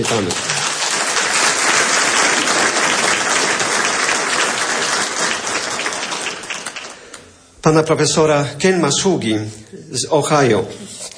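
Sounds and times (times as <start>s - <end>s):
speech: 0.0s - 0.6s, 7.6s - 11.0s
conference audience applauding a law school dean: 0.0s - 7.4s.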